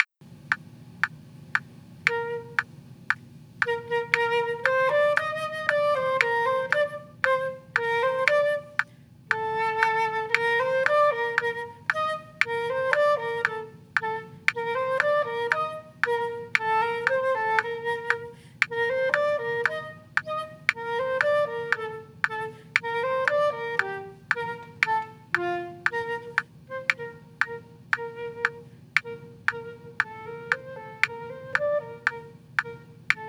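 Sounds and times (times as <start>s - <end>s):
trio playing with percussion: 2.1s - 33.2s.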